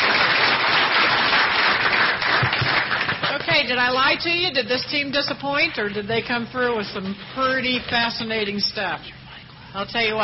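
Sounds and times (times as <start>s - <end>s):
audience applause: 0.0s - 3.5s
speech: 3.7s - 10.2s.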